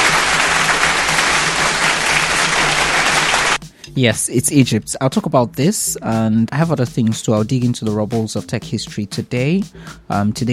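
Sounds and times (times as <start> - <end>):
applause: 0.0 - 3.6
speech: 4.0 - 10.5.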